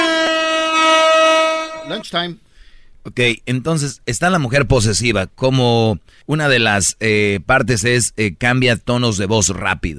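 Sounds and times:
bugle note: 0.0s - 2.0s
speech: 2.0s - 9.9s.

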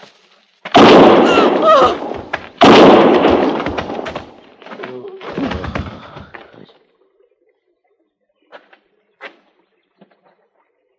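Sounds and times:
loud booming gunshots: 0.7s - 4.4s.

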